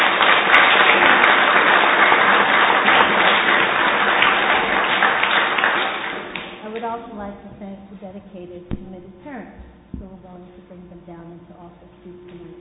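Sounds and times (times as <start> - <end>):
audience applause: 0.0 - 6.6
speech: 8.1 - 12.5.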